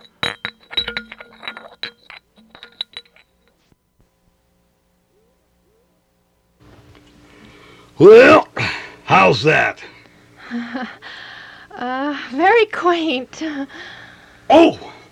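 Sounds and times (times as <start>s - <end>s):
silverware and china clinking: 0.0s - 3.6s
speech: 8.0s - 8.4s, 9.1s - 9.9s, 10.5s - 11.1s, 11.8s - 14.9s.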